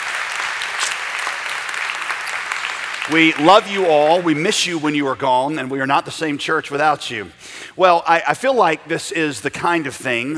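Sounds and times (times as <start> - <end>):
church congregation clapping welcoming back college students: 0.0 - 4.9
speech: 3.1 - 10.3.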